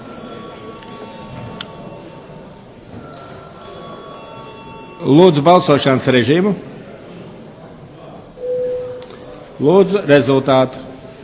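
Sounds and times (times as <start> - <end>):
parliament chamber bell ringing: 0.0 - 2.3, 3.0 - 5.8
speech: 5.0 - 6.7, 9.6 - 10.9.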